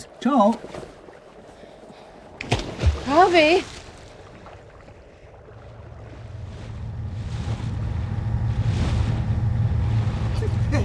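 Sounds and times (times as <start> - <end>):
boat engine rumble on the open sea: 0.0 - 10.8
waves washing: 0.0 - 10.8
speech: 0.2 - 0.9, 3.1 - 3.8
gusts of wind buffeting the microphone: 2.3 - 10.8.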